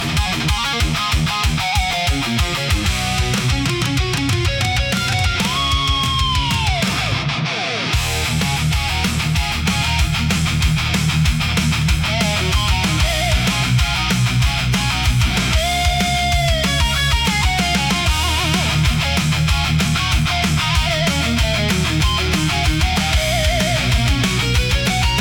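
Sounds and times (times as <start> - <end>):
powerful hard rock music: 0.0 - 25.2.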